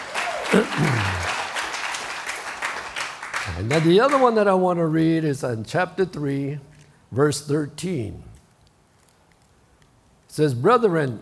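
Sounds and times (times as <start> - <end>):
audience clapping: 0.0 - 4.5
speech: 0.5 - 1.3, 3.6 - 8.3, 10.4 - 11.2.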